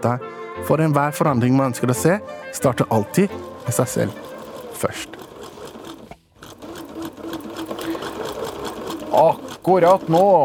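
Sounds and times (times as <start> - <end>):
speech: 0.0 - 5.2, 9.2 - 10.4
sewing machine stitching Norwegian bunad folk costumes: 2.6 - 10.4.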